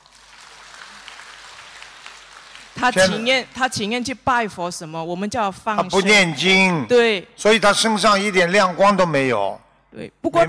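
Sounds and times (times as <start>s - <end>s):
applause: 0.0s - 3.9s
speech: 2.8s - 10.4s.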